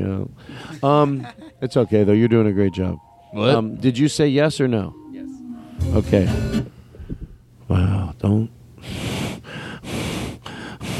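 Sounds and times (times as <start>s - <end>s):
speech: 0.0s - 5.0s, 5.8s - 6.8s, 7.7s - 9.3s
person breathing heavily: 0.4s - 0.8s, 8.8s - 10.9s.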